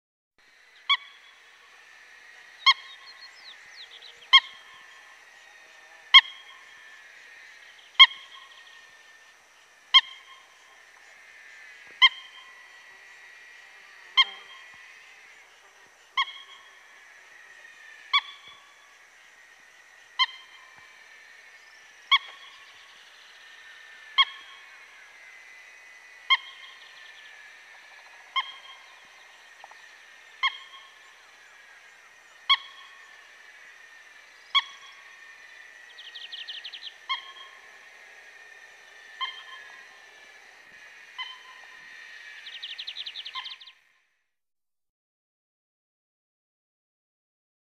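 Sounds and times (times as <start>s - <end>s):
frango d'agua calling: 0.5s - 43.9s.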